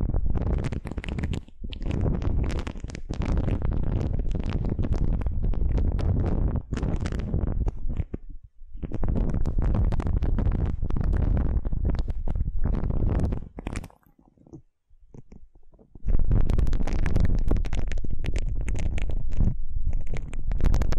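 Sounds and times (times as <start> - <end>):
aloe gel ear massage squelching and rubbing: 0.3 - 20.9.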